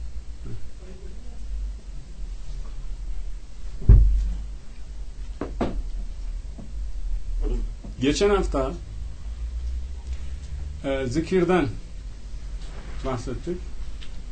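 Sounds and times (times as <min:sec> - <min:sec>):
low hum: 0:00.0 - 0:14.2
chair being moved, thumping and knocking: 0:03.8 - 0:04.4, 0:05.4 - 0:05.8
speech: 0:08.0 - 0:08.9, 0:10.8 - 0:11.8, 0:13.0 - 0:13.7.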